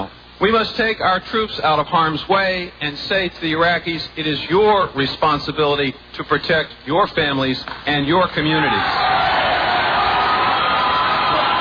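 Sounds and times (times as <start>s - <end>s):
speech: 0.0s - 9.2s
crowd applause and cheering at a Democratic presidential campaign event in Iowa: 8.7s - 11.5s.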